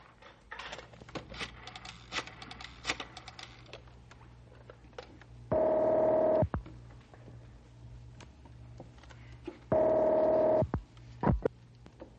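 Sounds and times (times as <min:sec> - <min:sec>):
telephone ringing: 0:05.5 - 0:06.5, 0:09.7 - 0:10.7.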